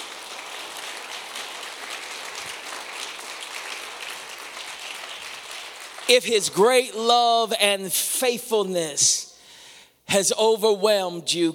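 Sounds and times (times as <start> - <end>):
audience clapping hands in praise: 0.0 - 6.8
speech: 6.1 - 9.3, 10.1 - 11.5.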